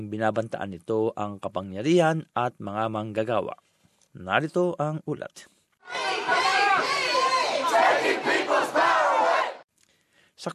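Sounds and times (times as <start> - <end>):
speech: 0.0 - 7.0, 10.4 - 10.5
protest crowd shouting in Kuala Lumpur: 5.8 - 9.6.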